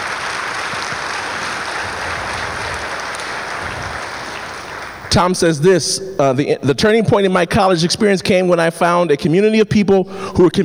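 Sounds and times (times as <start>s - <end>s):
audience clapping: 0.0s - 5.6s
speech: 5.2s - 10.6s.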